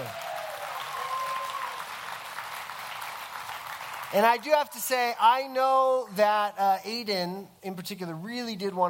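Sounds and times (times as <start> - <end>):
audience applause: 0.0 - 4.6
speech: 4.1 - 8.8.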